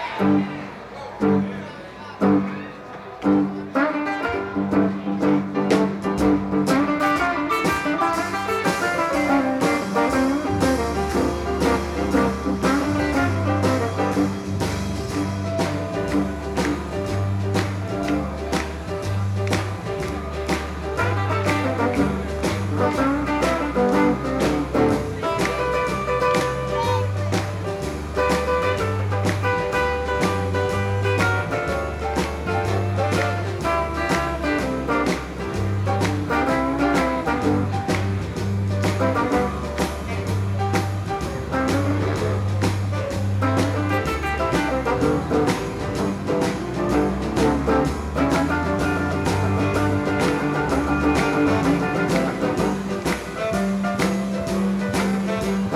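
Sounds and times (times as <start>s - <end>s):
instrumental boogie: 0.0s - 55.7s.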